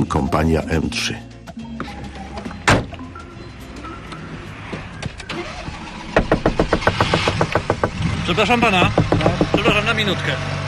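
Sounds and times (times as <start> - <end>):
speech: 0.0 - 1.3, 8.3 - 10.6
car engine running: 5.2 - 10.6.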